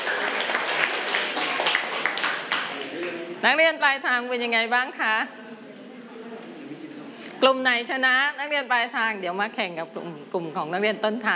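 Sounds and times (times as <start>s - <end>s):
classroom clapping: 0.0s - 3.3s
speech: 3.4s - 5.6s, 7.4s - 11.3s.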